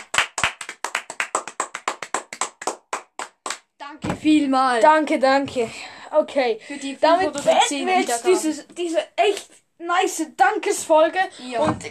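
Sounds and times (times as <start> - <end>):
hands clapping applause: 0.0 - 3.7
speech: 4.0 - 11.8.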